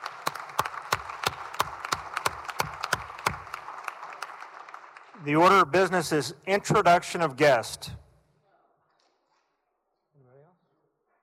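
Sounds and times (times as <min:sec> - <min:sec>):
applause welcoming guests in the Senate: 0:00.0 - 0:07.6
speech: 0:05.2 - 0:08.0.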